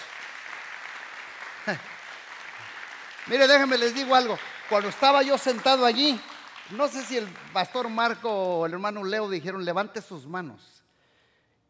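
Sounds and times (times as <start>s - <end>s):
audience applause: 0.0s - 8.8s
speech: 1.6s - 1.9s, 3.2s - 10.8s.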